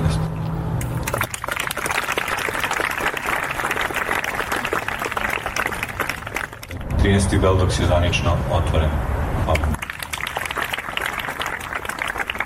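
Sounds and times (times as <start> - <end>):
audience applause opening the Beldocs documentary film festival in Belgrade: 1.0 - 6.8, 9.7 - 12.4
speech: 7.1 - 9.7.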